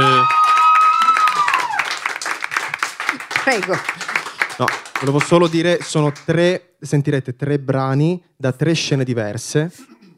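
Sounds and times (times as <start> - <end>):
small crowd clapping: 0.0 - 6.4
speech: 3.5 - 4.0, 4.6 - 10.0.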